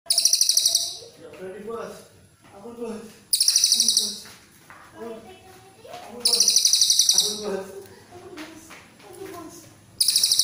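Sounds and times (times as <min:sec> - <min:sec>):
cililin coklat rapid high trill: 0:00.1 - 0:01.1, 0:03.3 - 0:04.3, 0:06.2 - 0:07.5, 0:10.0 - 0:10.4
soft low chatter: 0:00.1 - 0:10.4
speech: 0:01.4 - 0:03.2.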